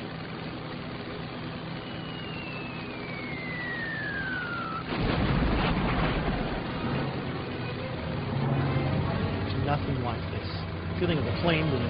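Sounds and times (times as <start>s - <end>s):
falling whine: 0.0s - 11.8s
aircraft machine guns firing: 4.8s - 7.2s
speech: 11.0s - 11.8s.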